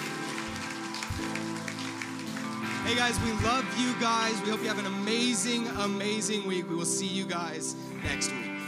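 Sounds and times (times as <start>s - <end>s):
crowd clapping: 0.0s - 4.9s
speech: 2.9s - 8.5s.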